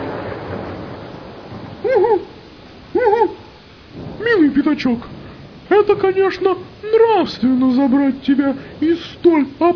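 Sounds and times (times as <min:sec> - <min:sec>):
owl hooting: 0:01.8 - 0:02.4, 0:02.9 - 0:03.6
speech: 0:04.8 - 0:05.2, 0:05.8 - 0:09.7.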